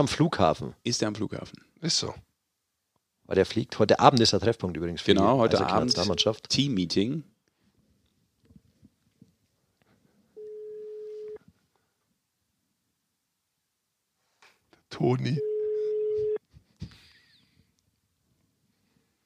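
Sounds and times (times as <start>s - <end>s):
speech: 0.0s - 2.2s, 3.3s - 7.3s, 14.9s - 15.5s
phone call ringing tone: 10.4s - 11.4s, 15.4s - 16.4s.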